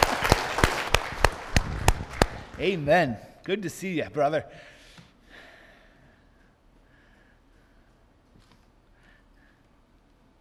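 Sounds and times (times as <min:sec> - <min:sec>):
audience applause: 0:00.0 - 0:02.6
speech: 0:02.6 - 0:04.7.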